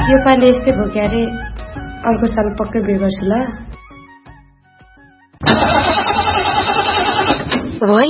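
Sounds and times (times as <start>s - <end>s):
speech: 0.1s - 3.7s, 7.8s - 8.0s
car engine with battery trouble cranking: 5.4s - 7.8s.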